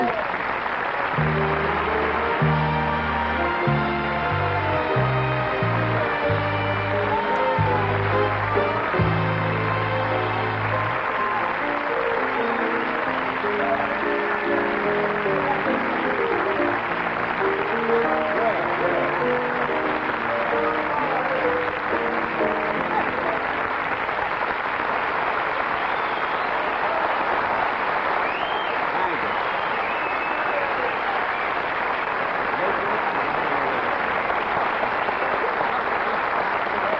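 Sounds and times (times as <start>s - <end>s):
studio audience applause welcoming a guest: 0.0s - 36.9s
band music: 1.1s - 24.2s.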